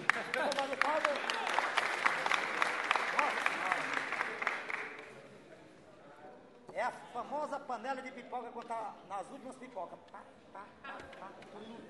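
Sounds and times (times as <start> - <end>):
audience applause: 0.0 - 5.1
speech: 6.9 - 11.8.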